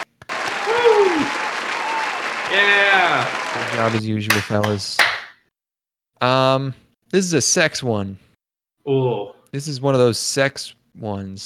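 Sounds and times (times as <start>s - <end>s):
audience applause: 0.0s - 4.7s
voice over clapping: 0.0s - 5.2s
speech: 2.5s - 5.2s, 6.2s - 11.4s.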